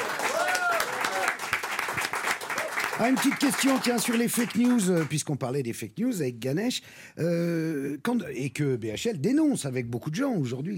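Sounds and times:
audience applause: 0.0s - 5.2s
speech: 3.0s - 10.7s.

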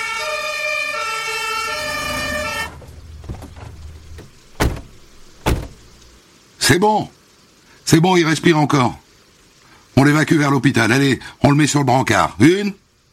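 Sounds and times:
fire engine siren: 0.0s - 4.6s
speech: 6.7s - 7.2s, 7.9s - 9.0s, 10.0s - 12.8s.

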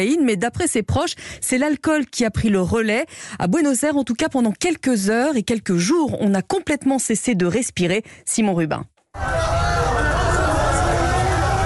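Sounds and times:
speech: 0.0s - 9.7s
crowd in the streets of Buenos Aires awaiting Diego Maradona's ambulance: 9.2s - 11.6s.

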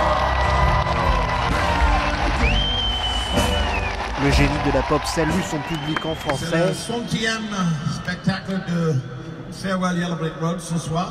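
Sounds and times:
stadium crowd cheering at a concert: 0.0s - 8.3s
high whistle: 2.4s - 4.1s, 5.6s - 6.6s
speech: 4.2s - 11.0s.

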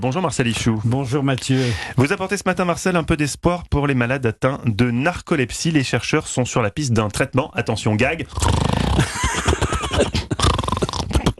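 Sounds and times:
speech: 0.0s - 10.3s
imitated snoring: 8.2s - 9.3s, 10.0s - 11.3s
laughter: 9.0s - 10.4s.

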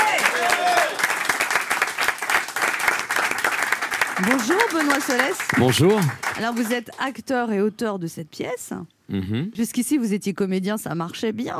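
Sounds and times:
audience applause: 0.0s - 7.0s
speech: 4.2s - 11.5s.

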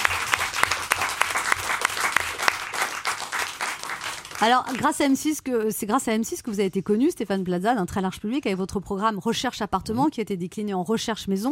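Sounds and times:
audience applause: 0.0s - 4.9s
speech: 4.4s - 11.5s.

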